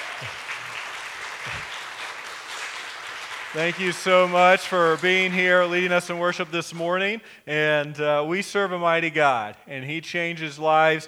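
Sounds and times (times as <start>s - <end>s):
audience applause: 0.0s - 5.6s
speech: 3.5s - 11.0s.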